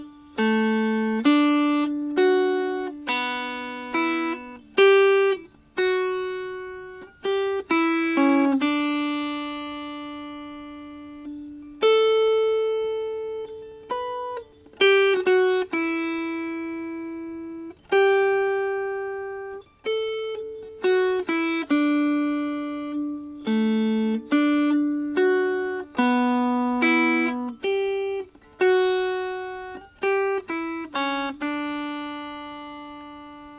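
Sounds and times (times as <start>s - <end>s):
dulcimer melody: 0.0s - 33.5s.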